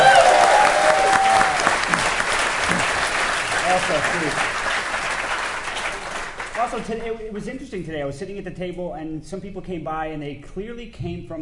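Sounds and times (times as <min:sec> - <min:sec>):
audience applause: 0:00.0 - 0:07.1
speech: 0:03.9 - 0:04.6, 0:06.7 - 0:11.4.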